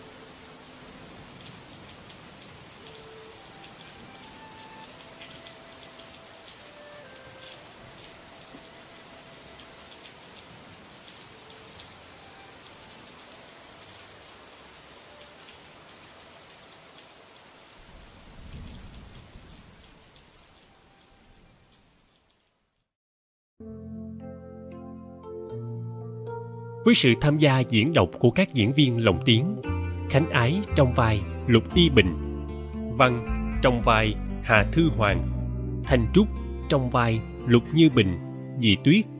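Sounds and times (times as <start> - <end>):
heavy pouring rain: 0.0 - 22.9
speech: 26.8 - 32.2, 33.0 - 39.1.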